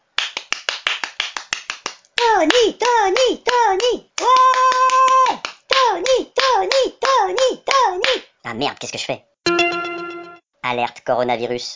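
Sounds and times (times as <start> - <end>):
hands clapping at a window: 0.0 - 8.2
speech: 2.4 - 4.0, 8.5 - 9.3, 10.7 - 11.7.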